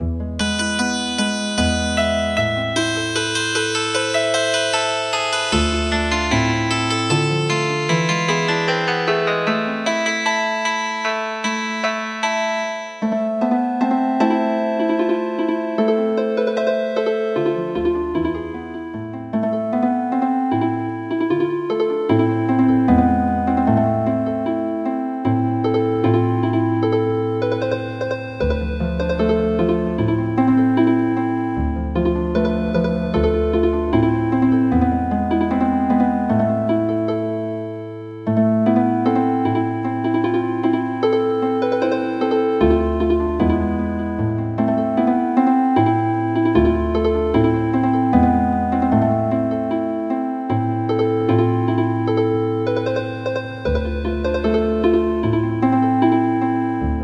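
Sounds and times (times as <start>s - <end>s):
healing harp: 0.0s - 57.0s.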